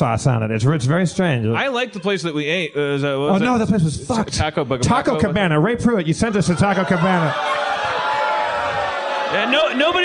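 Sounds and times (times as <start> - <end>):
speech: 0.0 - 7.7, 9.3 - 10.0
audience booing at a comedy show: 6.3 - 10.0.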